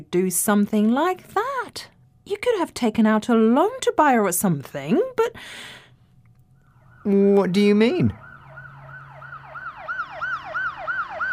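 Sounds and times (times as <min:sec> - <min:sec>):
speech: 0:00.0 - 0:05.8, 0:07.0 - 0:08.2
police siren sound effect yelping: 0:06.6 - 0:11.3.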